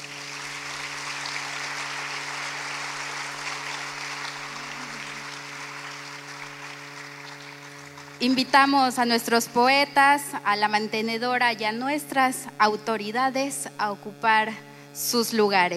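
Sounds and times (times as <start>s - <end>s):
audience applause: 0.0s - 8.4s
speech: 8.2s - 15.7s.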